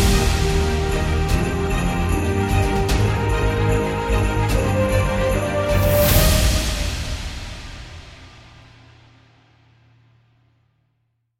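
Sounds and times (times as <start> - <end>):
cinematic inspirational Christmas music: 0.0 - 9.0.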